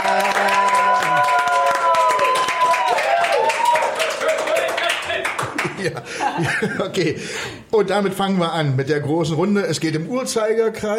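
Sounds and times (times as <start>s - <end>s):
applause: 0.0s - 6.0s
laughter: 4.2s - 7.3s
speech: 6.6s - 10.9s.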